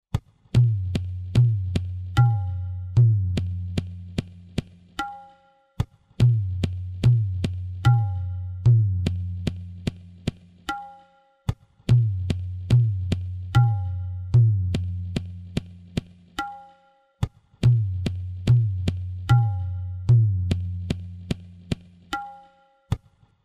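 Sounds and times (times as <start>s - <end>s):
dhamar tala rhythm: 0.1s - 23.3s.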